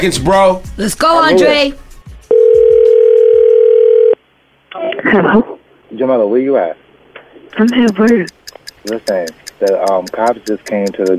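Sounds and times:
speech: 0.0 - 1.8, 4.8 - 6.8, 7.5 - 11.1
ringback tone on an outgoing phone call: 2.3 - 4.2.

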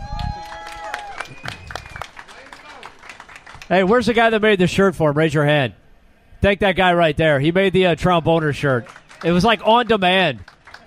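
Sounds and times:
audience clapping: 0.2 - 4.1, 8.1 - 10.8
speech: 3.7 - 5.8, 6.4 - 10.5.

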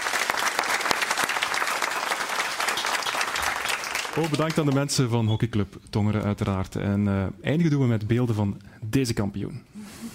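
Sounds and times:
sustained crowd applause: 0.0 - 4.9
speech: 4.2 - 9.7.

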